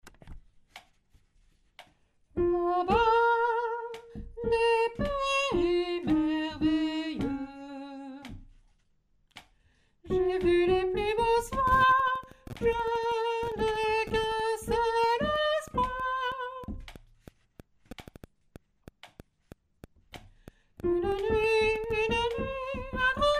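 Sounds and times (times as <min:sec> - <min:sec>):
soprano singing: 0:02.4 - 0:08.4, 0:10.1 - 0:16.8, 0:20.8 - 0:23.3.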